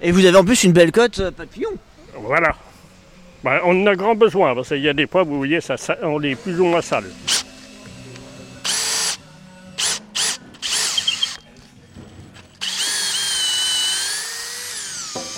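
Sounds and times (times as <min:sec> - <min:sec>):
speech: 0:00.0 - 0:02.7, 0:03.4 - 0:07.5
power drill driving out a screw: 0:06.3 - 0:09.2, 0:09.8 - 0:11.4, 0:12.6 - 0:15.3.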